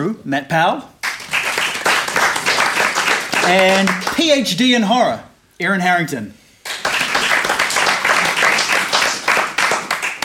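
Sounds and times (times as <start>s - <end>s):
speech: 0.0s - 0.9s, 3.4s - 6.4s
audience applause: 1.0s - 4.2s, 6.7s - 10.2s.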